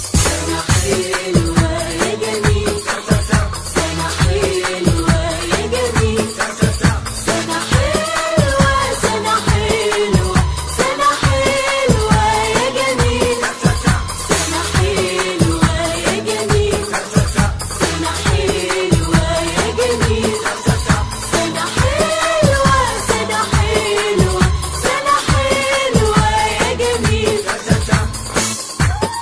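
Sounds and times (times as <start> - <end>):
Arabic birthday song: 0.1 - 29.0.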